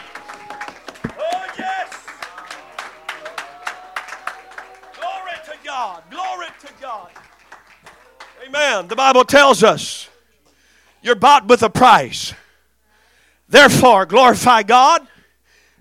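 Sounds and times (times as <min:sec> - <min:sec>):
audience clapping hands: 0:00.0 - 0:10.2
speech: 0:08.5 - 0:10.1, 0:11.0 - 0:12.4, 0:13.5 - 0:15.1.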